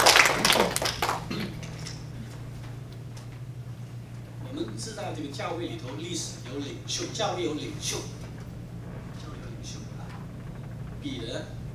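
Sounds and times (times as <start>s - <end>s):
audience applauding: 0.0s - 2.0s
speech: 5.2s - 8.2s, 11.0s - 11.6s.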